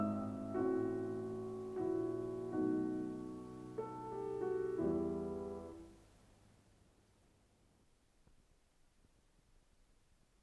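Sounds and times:
piano sonata in E minor: 0.0 - 6.1.

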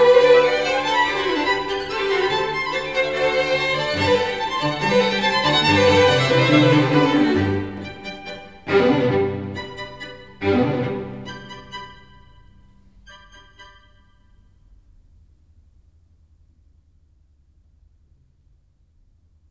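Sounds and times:
string quartet in G: 0.0 - 14.1.

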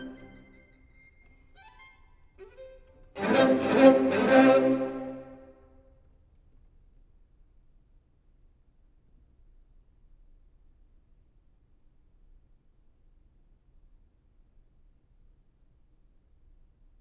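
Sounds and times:
string quartet playing an allegretto in C minor: 0.0 - 0.8, 2.4 - 5.5.

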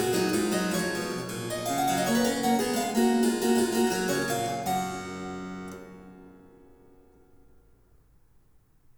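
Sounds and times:
harpsichord: 0.0 - 7.0.

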